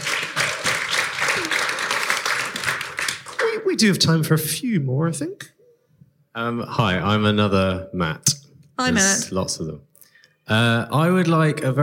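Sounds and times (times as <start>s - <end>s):
crowd applause: 0.0s - 3.9s
speech: 3.7s - 5.5s, 6.4s - 9.9s, 10.5s - 11.8s.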